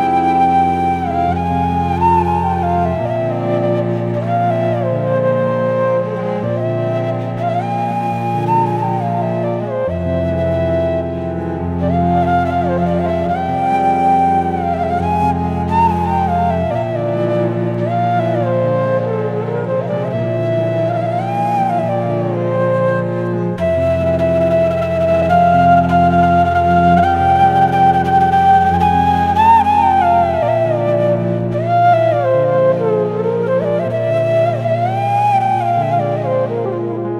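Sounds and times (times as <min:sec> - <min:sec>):
Indian flute playing: 0:00.0 - 0:37.1.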